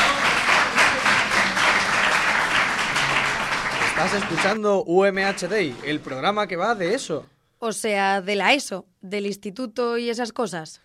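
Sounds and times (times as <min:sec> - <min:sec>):
applause: 0:00.0 - 0:04.6, 0:05.2 - 0:06.4
speech: 0:04.0 - 0:10.8.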